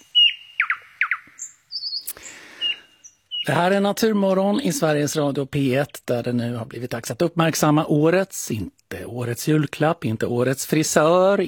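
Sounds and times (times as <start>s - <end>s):
nightingale singing: 0.0s - 6.7s
speech: 3.4s - 11.4s.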